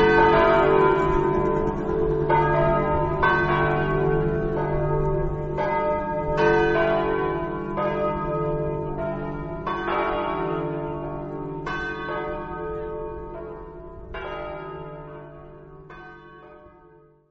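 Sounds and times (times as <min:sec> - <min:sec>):
church bells ringing: 0:00.0 - 0:17.0.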